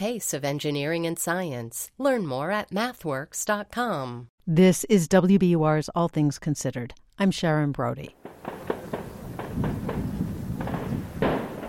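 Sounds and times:
speech: 0.0s - 8.2s
gunfire exchange between French SWAT teams and gunmen outside Paris: 8.2s - 11.6s.

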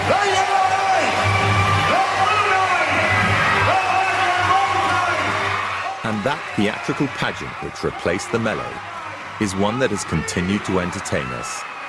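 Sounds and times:
crowd cheering: 0.0s - 11.8s
speech: 6.2s - 11.7s.

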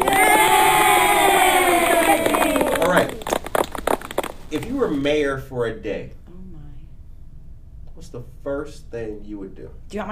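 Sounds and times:
crowd cheering: 0.0s - 5.0s
speech: 4.8s - 6.2s, 8.0s - 10.0s.

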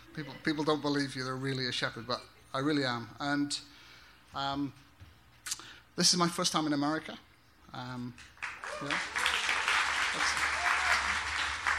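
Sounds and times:
speech: 0.2s - 3.7s, 4.3s - 4.8s, 6.0s - 9.2s, 10.2s - 10.4s
crowd applause: 8.4s - 11.7s.

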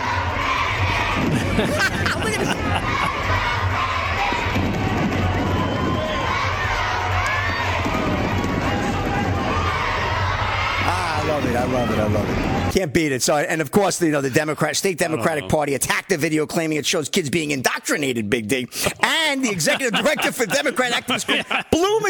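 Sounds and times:
large crowd chanting and cheering at a wrestling event: 0.0s - 12.7s, 19.4s - 21.7s
laughter: 0.9s - 4.0s, 15.0s - 15.6s, 18.9s - 22.0s
speech: 1.2s - 3.9s, 11.5s - 22.0s.

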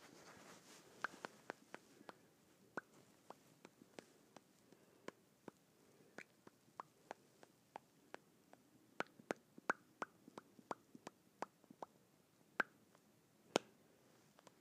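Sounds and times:
faint soft hiss: 0.0s - 14.6s
lips smacking together: 0.4s - 12.0s.

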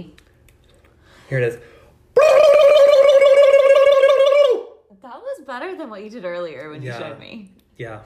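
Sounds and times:
speech: 0.0s - 0.2s, 1.3s - 1.7s, 5.5s - 8.0s
person imitating a turkey gobble: 2.2s - 4.8s.

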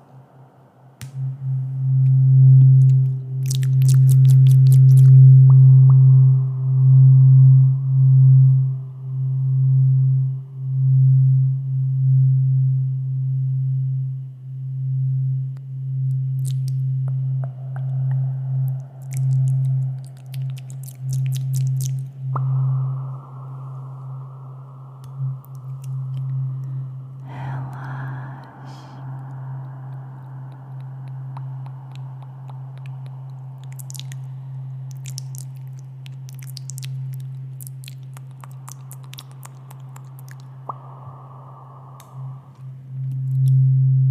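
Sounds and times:
tuning fork humming: 0.0s - 44.0s
intense ASMR wet mouth clicks: 2.7s - 5.1s, 16.4s - 22.6s, 25.0s - 41.0s, 42.0s - 43.6s.

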